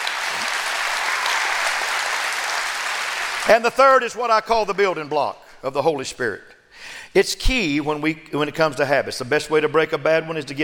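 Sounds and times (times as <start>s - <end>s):
audience clapping hands: 0.0s - 4.1s
speech: 3.4s - 10.6s.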